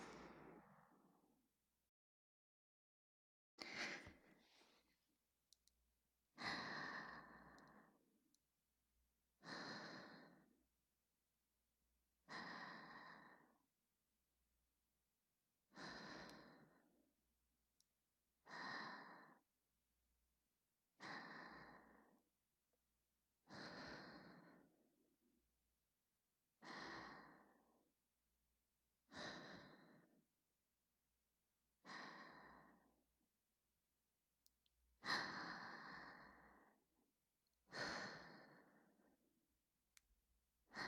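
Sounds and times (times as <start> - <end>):
whispered breathing: 0.0 - 1.2, 3.6 - 5.0, 6.4 - 8.2, 9.4 - 10.7, 12.3 - 13.7, 15.7 - 17.1, 18.4 - 19.5, 21.0 - 22.3, 23.4 - 25.0, 26.6 - 27.9, 29.0 - 30.3, 31.8 - 33.1, 35.0 - 37.0, 37.6 - 39.4, 40.7 - 40.8.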